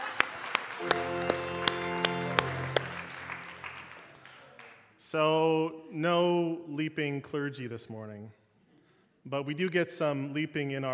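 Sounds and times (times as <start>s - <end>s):
audience applause: 0.0s - 4.8s
speech: 5.1s - 8.4s, 9.2s - 10.9s.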